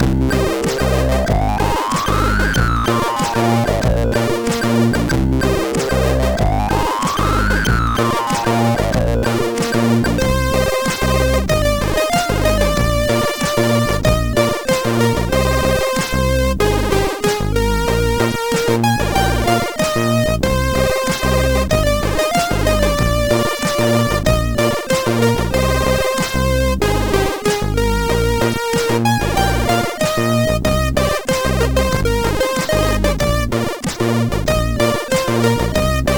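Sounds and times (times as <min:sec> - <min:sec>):
feeble MOS6581R4 SID chip synthesizer tone: 0:00.0 - 0:36.1.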